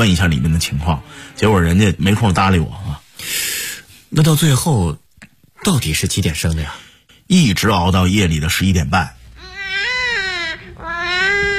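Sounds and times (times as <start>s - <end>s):
speech: 0.0s - 3.4s, 4.1s - 5.0s, 5.6s - 9.2s
newborn baby crying in a hospital delivery room: 9.4s - 11.5s.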